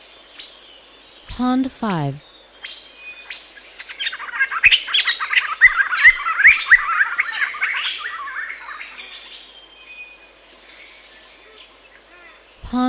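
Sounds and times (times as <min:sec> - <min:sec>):
steady high insect drone: 0:00.0 - 0:12.8
speech: 0:01.4 - 0:02.3
joyful greenbul chattering calls: 0:03.8 - 0:09.1.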